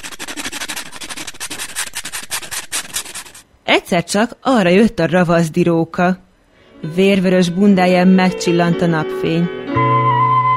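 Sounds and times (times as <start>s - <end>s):
filing fingernails with a nail file: 0.0s - 3.4s
speech: 3.7s - 6.2s, 6.8s - 10.0s.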